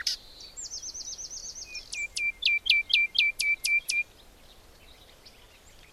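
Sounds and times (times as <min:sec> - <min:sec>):
bird singing short rising slurred notes: 0:01.5 - 0:04.1.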